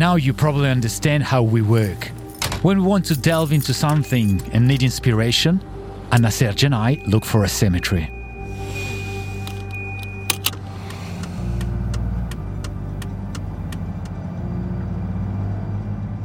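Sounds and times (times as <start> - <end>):
speech: 0.0 - 8.2
car driving in Melbourne engine and road rumble: 0.0 - 16.2
sharp clicks: 9.4 - 14.2.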